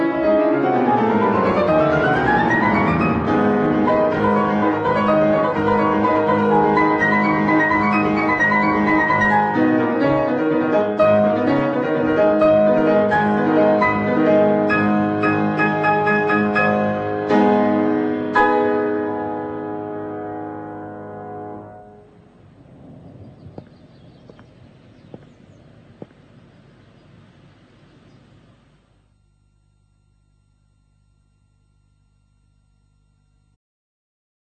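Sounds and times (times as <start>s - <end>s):
piano: 0.0s - 25.5s.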